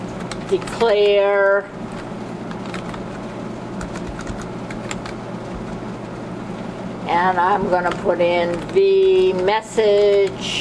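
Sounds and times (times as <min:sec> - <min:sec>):
typing on a computer keyboard: 0:00.0 - 0:00.9, 0:01.9 - 0:03.2, 0:03.8 - 0:05.8, 0:07.8 - 0:10.4
hum and hiss: 0:00.0 - 0:10.6
speech: 0:00.5 - 0:01.9, 0:07.1 - 0:10.6.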